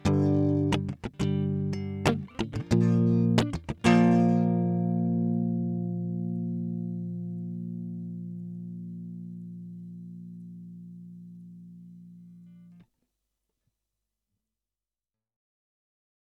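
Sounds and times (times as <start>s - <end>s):
guitar: 0.0s - 12.8s.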